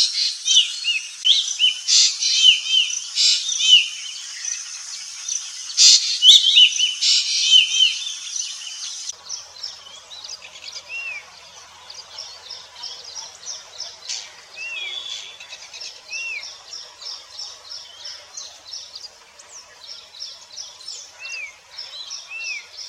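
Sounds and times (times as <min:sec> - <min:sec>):
birds chirping: 0:00.0 - 0:22.8
hissing noise: 0:00.0 - 0:22.8.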